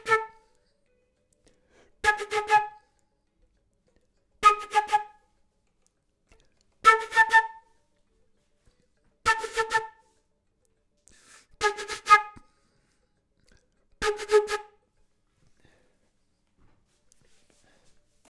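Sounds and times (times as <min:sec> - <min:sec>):
flute: 0:00.0 - 0:00.6, 0:02.0 - 0:03.0, 0:04.4 - 0:05.2, 0:06.8 - 0:07.9, 0:09.2 - 0:10.2, 0:11.6 - 0:12.5, 0:14.0 - 0:14.8.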